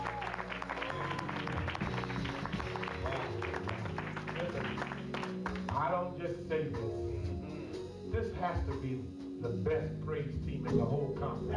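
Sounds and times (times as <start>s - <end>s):
audience applause: 0.0s - 5.8s
speech: 6.0s - 7.0s, 8.1s - 11.5s.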